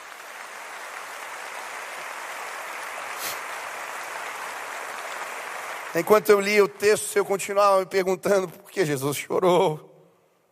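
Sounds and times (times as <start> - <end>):
audience applauding: 0.0 - 7.8
speech: 6.0 - 9.9.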